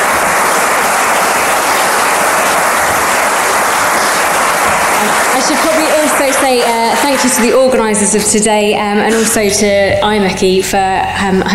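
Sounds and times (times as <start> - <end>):
audience applause: 0.0 - 8.1
speech: 5.4 - 11.5.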